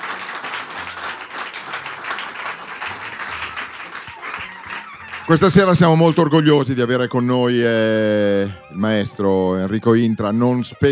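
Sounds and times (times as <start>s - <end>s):
audience applause in an auditorium: 0.0s - 6.3s
speech: 5.3s - 10.9s.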